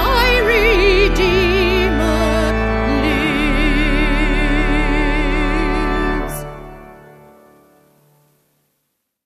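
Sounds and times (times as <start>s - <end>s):
person singing a hymn: 0.0s - 6.7s
organ: 0.0s - 8.4s.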